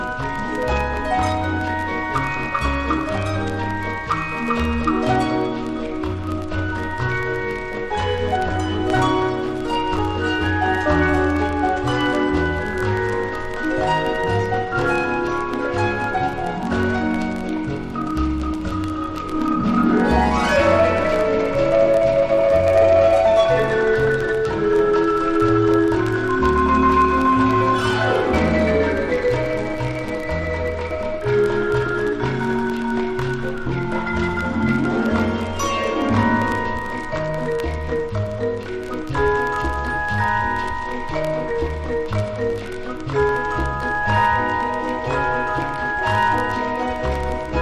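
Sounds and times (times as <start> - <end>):
percussion ensemble playing: 0.0 - 47.6.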